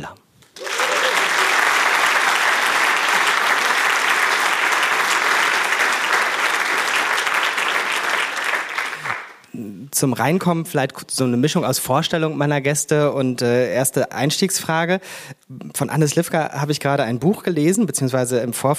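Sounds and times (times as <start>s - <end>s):
crowd applauding: 0.5s - 9.4s
speech: 9.9s - 18.7s.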